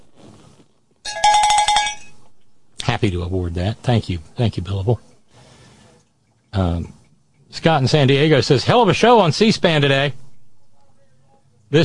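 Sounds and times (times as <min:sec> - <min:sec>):
cowbell clanking: 0:01.1 - 0:02.2
speech: 0:03.0 - 0:05.1, 0:06.6 - 0:10.2.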